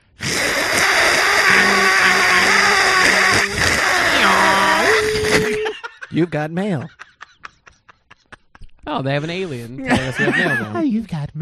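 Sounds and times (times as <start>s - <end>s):
dial-up modem screech: 0.2s - 5.9s
laughter: 5.5s - 10.8s
speech: 6.2s - 7.0s, 8.9s - 11.3s.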